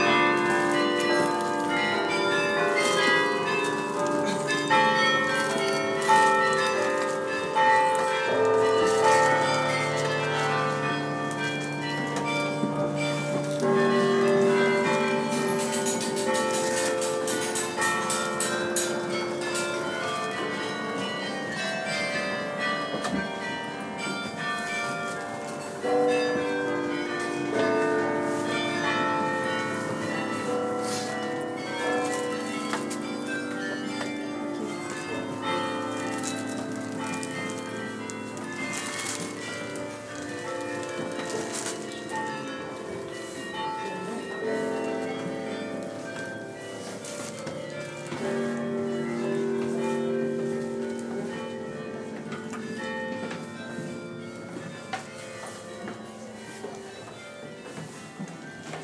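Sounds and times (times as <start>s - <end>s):
Bruges belfry bells: 0.0s - 58.8s.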